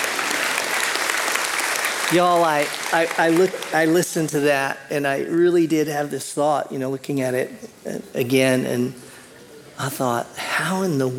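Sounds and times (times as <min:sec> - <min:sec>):
audience clapping: 0:00.0 - 0:04.3
speech: 0:02.1 - 0:09.0, 0:09.8 - 0:11.1.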